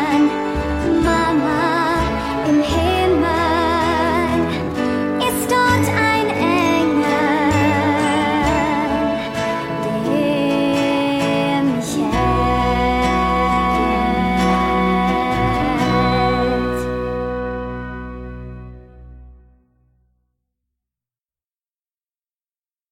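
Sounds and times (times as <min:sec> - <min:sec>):
German vocals: 0:00.0 - 0:17.8.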